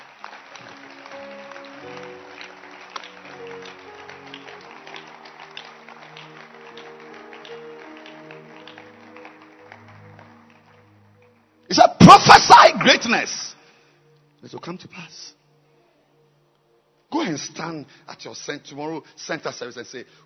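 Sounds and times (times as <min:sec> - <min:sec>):
audience clapping: 0:00.0 - 0:13.2
speech: 0:13.1 - 0:13.4, 0:14.4 - 0:15.4, 0:17.2 - 0:20.2.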